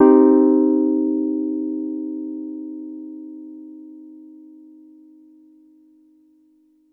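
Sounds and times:
Wurl electric piano minor chord: 0.0 - 5.4.

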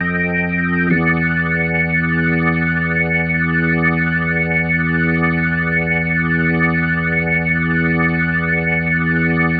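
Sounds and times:
organ ending music: 0.0 - 9.5.

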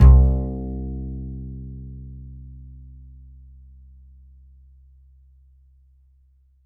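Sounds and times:
upright acoustic bass A note: 0.0 - 3.1.

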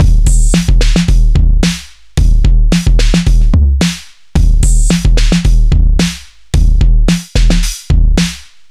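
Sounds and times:
junk hip hop beat: 0.0 - 8.7.

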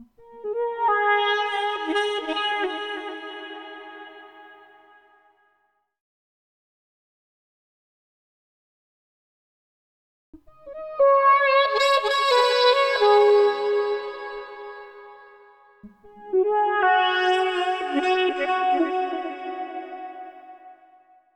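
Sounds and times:
saxophone: 0.0 - 5.2, 10.5 - 21.2
brass: 0.2 - 5.3, 10.8 - 21.1.

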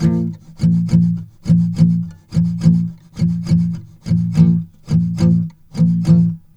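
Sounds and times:
guitars playing a slow shuffle: 0.0 - 6.4.

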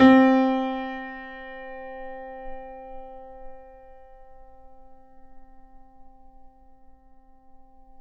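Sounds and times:
grand piano note C3 played mezzo-forte: 0.0 - 4.9.

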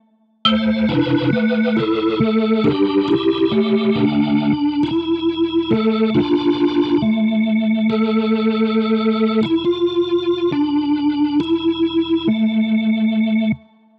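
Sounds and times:
drum and bass synth loop: 0.5 - 13.3.

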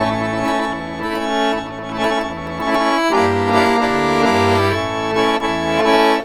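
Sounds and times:
accordion Balkan-style traditional music: 0.0 - 6.2.

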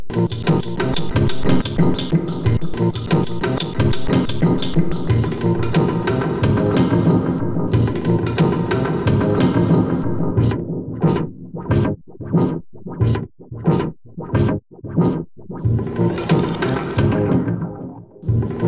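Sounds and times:
synth sequence: 0.2 - 18.6.

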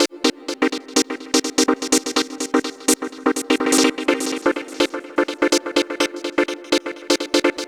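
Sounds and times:
house synth loops: 0.0 - 7.6.

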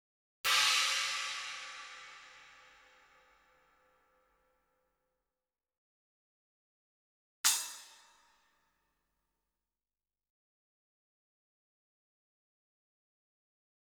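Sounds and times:
china cymbal hit with charleston stick: 0.5 - 3.9, 7.5 - 8.2.

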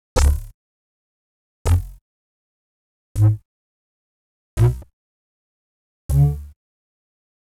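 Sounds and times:
CS80 percussive bass D+3: 0.2 - 0.5, 1.7 - 2.0, 6.1 - 6.4.

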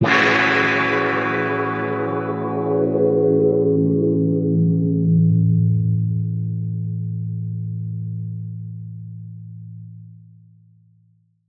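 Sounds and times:
guitar chords in A major: 0.0 - 7.2.

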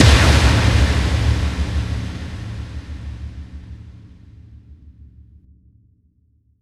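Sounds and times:
effect kick drum hits: 0.0 - 4.0.

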